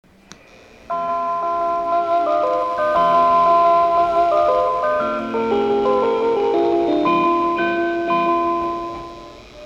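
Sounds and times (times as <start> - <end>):
chime: 0.9 - 9.4.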